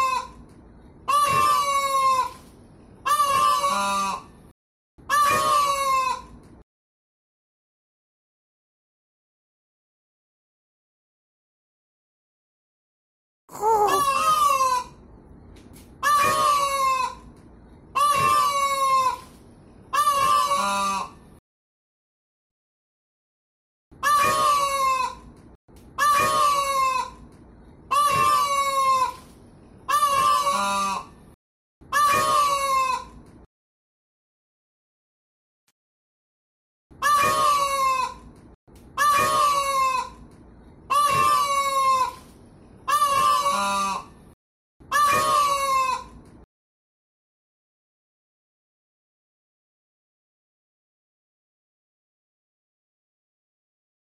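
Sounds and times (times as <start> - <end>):
peafowl braying calls: 0.0 - 0.4, 1.1 - 4.3, 5.1 - 6.4, 13.6 - 15.0, 16.0 - 17.3, 17.9 - 21.2, 24.0 - 25.3, 26.0 - 27.2, 27.9 - 29.3, 29.9 - 31.1, 31.9 - 33.2, 37.0 - 38.3, 39.0 - 40.2, 40.9 - 44.2, 44.9 - 46.2.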